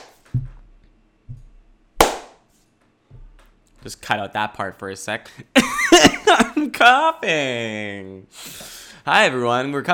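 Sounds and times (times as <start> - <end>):
dull low thuds: 0.3 - 1.8
hand clap for audio sync: 2.0 - 2.4
speech: 3.8 - 9.9.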